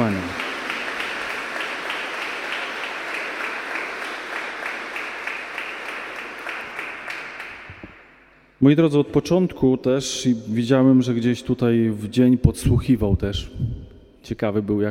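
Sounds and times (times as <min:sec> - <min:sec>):
audience applause: 0:00.0 - 0:08.0
speech: 0:08.6 - 0:14.8.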